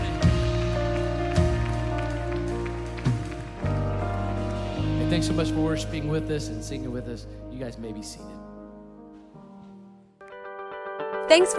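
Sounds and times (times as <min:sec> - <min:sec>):
audience clapping: 0:00.0 - 0:05.7
speech: 0:05.1 - 0:08.4, 0:11.3 - 0:11.5.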